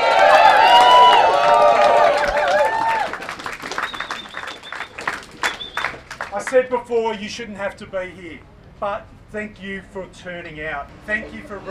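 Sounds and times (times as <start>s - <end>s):
crowd cheering and whooping: 0.0s - 6.0s
thin high sustained whistle: 3.7s - 6.0s
speech: 6.5s - 11.6s.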